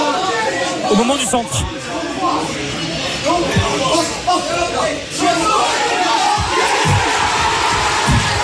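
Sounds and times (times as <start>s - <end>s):
speech: 0.9s - 5.9s
football fans cheering in an airport: 3.5s - 8.4s.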